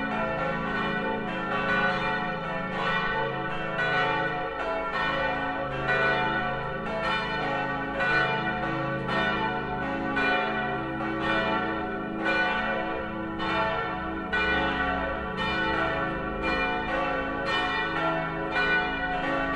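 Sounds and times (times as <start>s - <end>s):
church bells ringing in Lensahn: 0.0s - 19.5s.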